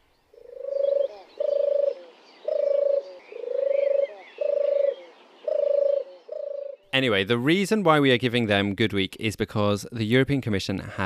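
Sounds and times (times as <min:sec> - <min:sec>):
European turtle dove purring: 0:00.3 - 0:06.9
speech: 0:07.0 - 0:11.0.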